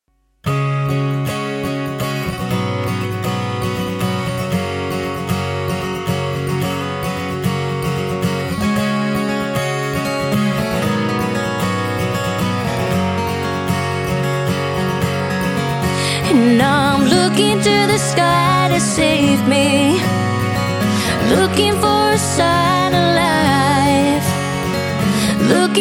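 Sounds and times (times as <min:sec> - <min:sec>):
acoustic music: 0:00.0 - 0:25.8.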